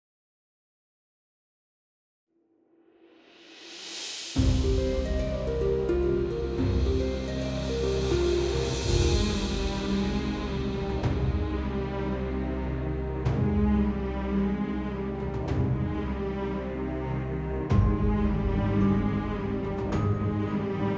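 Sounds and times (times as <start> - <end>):
background music: 4.4 - 20.9.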